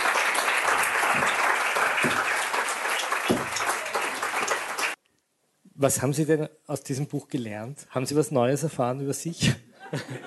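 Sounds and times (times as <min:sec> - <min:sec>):
audience applause: 0:00.0 - 0:05.0
speech: 0:05.8 - 0:10.2
laughter: 0:09.8 - 0:10.2.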